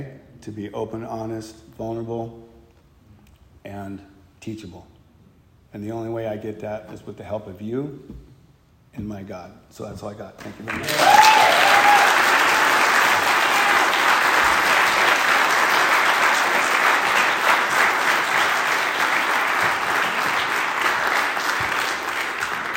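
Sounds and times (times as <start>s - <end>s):
speech: 0.0s - 2.5s, 3.6s - 5.0s, 5.7s - 8.3s, 9.0s - 12.0s
sustained applause from a large audience: 10.6s - 22.7s.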